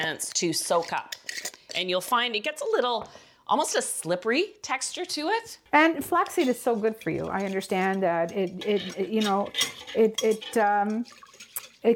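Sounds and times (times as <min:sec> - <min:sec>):
speech: 0:00.1 - 0:11.2
whisk clinking and scraping against a bowl, whisking flaxseed into milk: 0:06.2 - 0:11.8.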